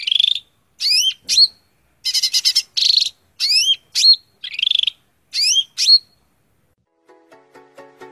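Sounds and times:
greater green leafbird song: 0.0 - 6.2.

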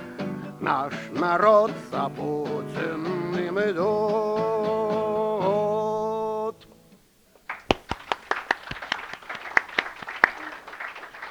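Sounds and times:
speech: 0.6 - 5.8
audience scattered weak clapping at a bards' song performance: 7.4 - 11.2.

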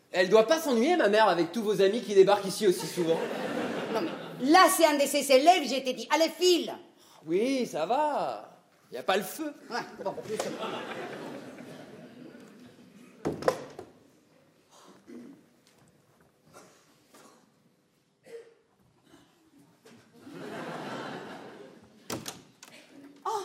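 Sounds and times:
speech: 0.1 - 11.3
laughter: 2.6 - 4.5, 10.1 - 13.2, 20.1 - 22.1
apartment door pushed shut with a wooden bang: 22.1 - 22.6.

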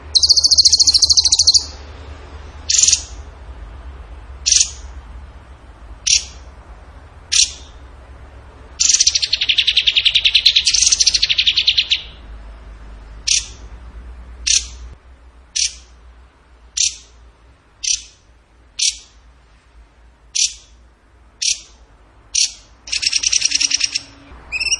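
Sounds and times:
bird chips and trill: 0.0 - 1.8, 2.7 - 3.2, 4.4 - 4.9, 6.0 - 6.4, 7.3 - 7.8, 8.8 - 12.2, 13.2 - 13.6, 14.5 - 14.8, 15.6 - 15.9, 16.8 - 17.1, 17.8 - 18.2, 18.8 - 19.2, 20.3 - 20.8, 21.4 - 24.7.

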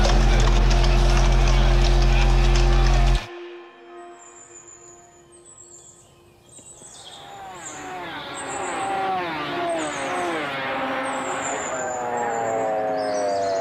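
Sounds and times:
distant roar of motorcycle engines: 0.0 - 3.3, 6.6 - 13.5.

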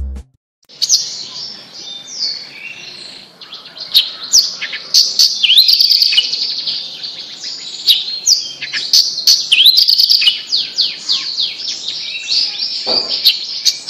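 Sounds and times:
bird delivering fast high trilled and chattering phrases: 3.5 - 13.8.

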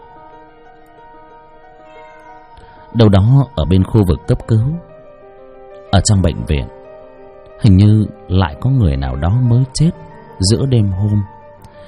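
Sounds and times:
stray cat wailing meow at night: 1.8 - 2.6
speech: 2.9 - 4.9, 6.0 - 6.8, 7.6 - 11.4.

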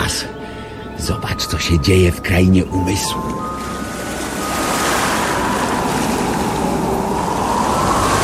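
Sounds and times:
speech: 0.1 - 0.4, 1.0 - 3.7
rough lake water with high waves: 3.1 - 8.2.

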